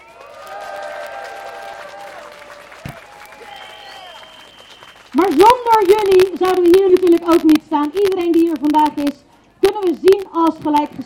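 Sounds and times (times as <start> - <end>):
crowd applause at a protest: 0.0 - 5.3
speech: 5.2 - 9.2, 9.8 - 11.0.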